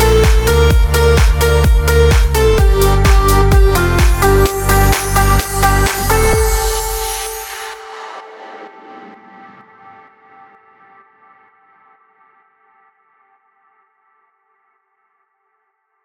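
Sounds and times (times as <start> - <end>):
Christmas music in A major at 128 BPM: 0.0 - 9.4.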